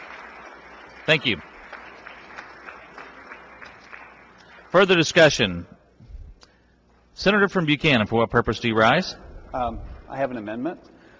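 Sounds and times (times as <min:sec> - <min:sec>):
faint applause in a state Senate chamber in Jefferson City: 0:00.0 - 0:04.7
speech: 0:01.1 - 0:01.5, 0:04.7 - 0:05.7, 0:07.2 - 0:10.9.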